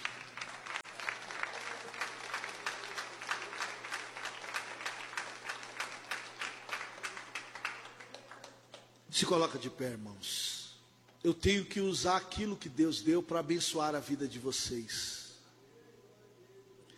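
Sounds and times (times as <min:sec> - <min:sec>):
audience applause: 0:00.0 - 0:08.9
speech: 0:09.2 - 0:10.5, 0:11.2 - 0:15.2.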